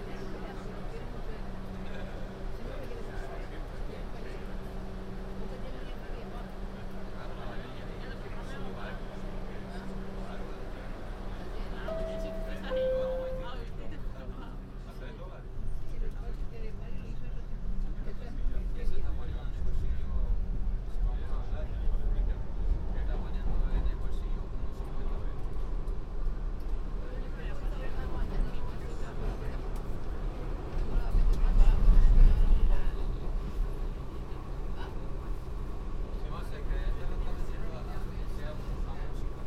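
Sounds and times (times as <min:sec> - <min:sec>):
downtown local 1 train rumbling: 0:00.0 - 0:39.4
brief high tone: 0:11.9 - 0:13.7.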